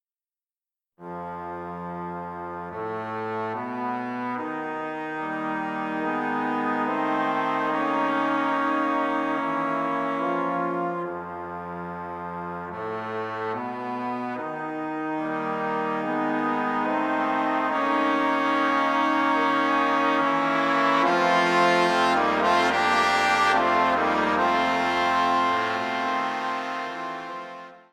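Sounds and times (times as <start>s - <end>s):
trombone quartet: 1.0s - 27.9s.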